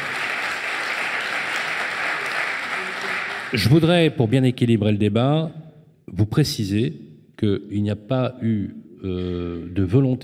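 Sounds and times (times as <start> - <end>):
audience applause: 0.0 - 3.9
speech: 3.5 - 10.2.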